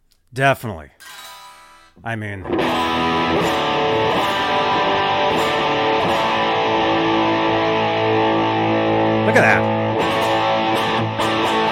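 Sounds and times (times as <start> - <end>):
speech: 0.3 - 1.0, 2.0 - 3.8, 9.3 - 9.8
Kramer Beretta Special electric guitar played through an echo effect: 2.4 - 11.6.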